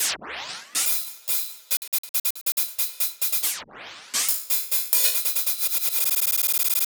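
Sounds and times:
hi-hat beats: 0.8 - 3.6, 4.2 - 6.8.

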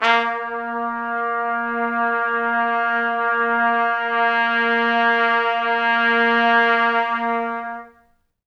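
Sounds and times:
pop brass A sharp 2 note: 0.0 - 8.0.

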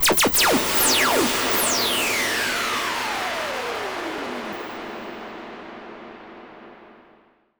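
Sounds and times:
Virus noise: 0.0 - 7.4.

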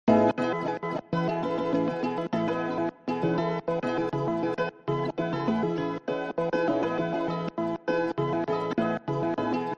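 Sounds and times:
chopped guitar: 0.1 - 9.7.

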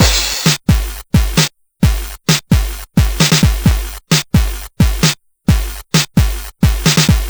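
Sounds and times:
Game Boy progressive rock drum loop: 0.0 - 2.0, 3.0 - 3.8, 4.9 - 7.2.

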